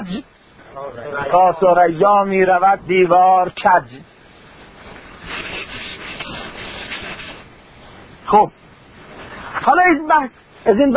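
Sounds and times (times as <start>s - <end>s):
speech: 0.0s - 4.1s, 8.3s - 8.6s, 9.6s - 10.9s
board being wiped clean: 4.9s - 7.5s.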